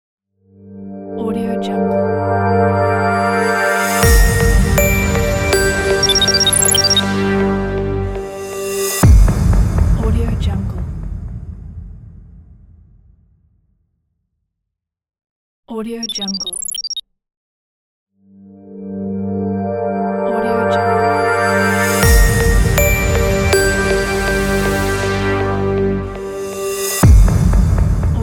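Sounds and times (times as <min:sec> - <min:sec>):
opening title logo jingle: 0:00.6 - 0:09.9, 0:18.5 - 0:28.1.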